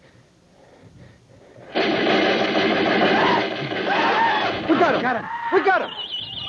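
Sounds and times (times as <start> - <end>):
rifle gunfire: 1.7 - 5.0
speech: 5.0 - 6.2.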